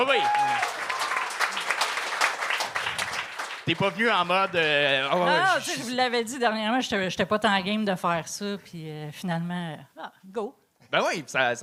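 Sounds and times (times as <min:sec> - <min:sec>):
audience applause: 0:00.0 - 0:05.2
speech: 0:03.7 - 0:11.6.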